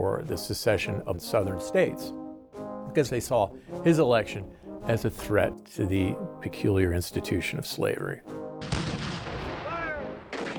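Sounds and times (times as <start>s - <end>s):
speech: 0.2s - 2.2s, 2.9s - 8.8s
Confederate artillery fire on Fort Sumter, April 1861: 8.6s - 10.5s.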